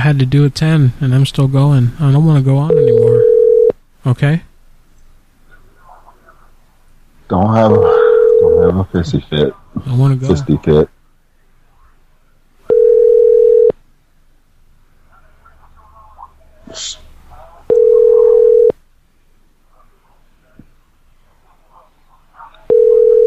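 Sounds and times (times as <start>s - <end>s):
speech: 0.1s - 3.1s, 4.0s - 4.5s, 7.3s - 8.0s, 8.6s - 11.0s, 16.7s - 17.0s
telephone dial tone, hotel not answering: 2.7s - 3.8s, 7.6s - 8.8s, 12.7s - 13.8s, 17.7s - 18.8s, 22.7s - 23.2s.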